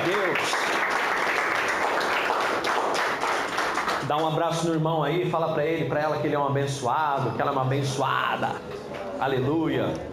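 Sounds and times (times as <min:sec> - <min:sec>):
audience applause: 0:00.0 - 0:04.3
speech: 0:04.1 - 0:10.1.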